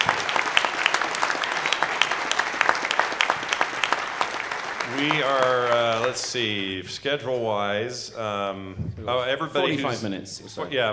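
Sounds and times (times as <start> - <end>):
audience applause: 0.0 - 7.4
speech: 5.0 - 10.9.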